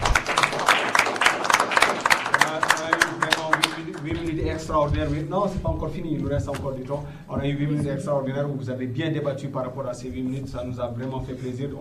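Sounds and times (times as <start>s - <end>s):
audience applause: 0.0s - 4.4s
speech: 4.7s - 11.7s.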